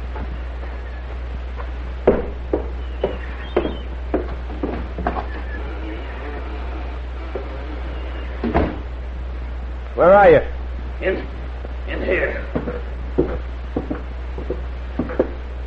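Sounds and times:
steady low hum: 0.0s - 15.6s
front door opening and closing: 4.6s - 8.9s
speech: 10.0s - 11.4s.

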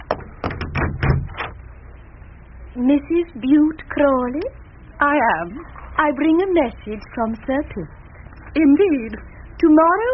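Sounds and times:
door latch and wood rattling as a door is opened: 0.0s - 1.6s
speech: 2.8s - 10.1s.

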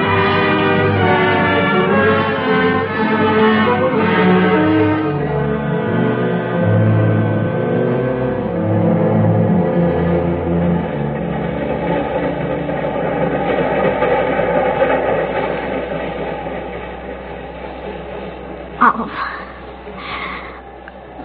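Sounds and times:
subway train rumbling: 0.0s - 21.2s.

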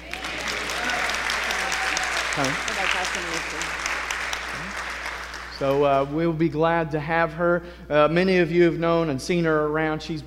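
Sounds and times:
people saying amen: 0.0s - 3.8s, 4.4s - 4.9s
applause: 0.0s - 6.2s
speech: 2.4s - 3.9s, 5.6s - 10.2s.

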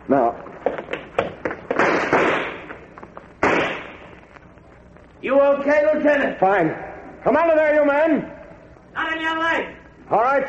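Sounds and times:
speech: 0.1s - 0.4s, 5.4s - 8.3s, 9.0s - 10.4s
gunshots fired as covering fire in a firefight: 1.6s - 2.8s, 3.4s - 4.2s.

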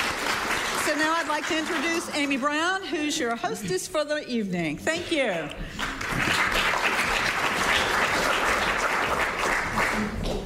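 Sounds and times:
audience applauding: 0.0s - 2.8s, 5.7s - 10.4s
speech: 1.0s - 6.0s.

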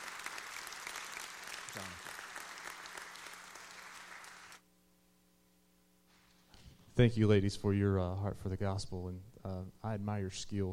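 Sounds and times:
audience applause: 0.0s - 4.6s
speech: 1.8s - 2.2s, 7.0s - 10.7s.

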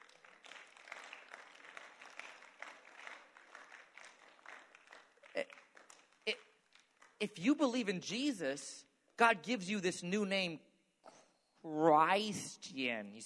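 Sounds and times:
slow clap: 0.0s - 7.2s
speech: 7.2s - 10.7s, 11.6s - 13.2s.

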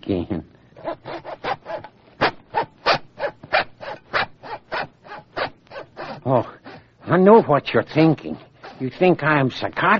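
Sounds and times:
speech: 0.1s - 0.5s, 7.2s - 9.9s
saw cutting through bone: 0.8s - 9.1s.

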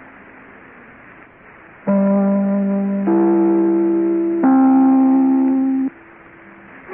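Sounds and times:
broadcast network chime: 1.9s - 6.0s.

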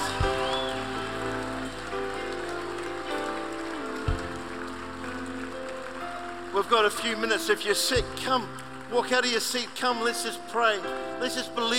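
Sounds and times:
audience clapping: 0.0s - 11.7s
speech: 6.6s - 11.7s.

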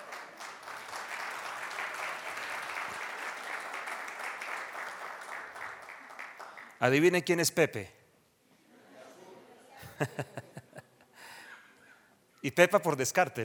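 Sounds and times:
audience applause: 0.0s - 6.8s
speech: 6.8s - 8.0s, 10.0s - 10.5s, 12.4s - 13.4s
laughter: 8.7s - 11.0s.

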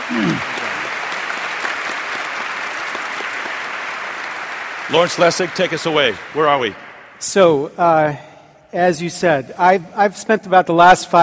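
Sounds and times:
audience applause: 0.0s - 7.2s
speech: 0.1s - 0.6s, 4.9s - 11.2s.

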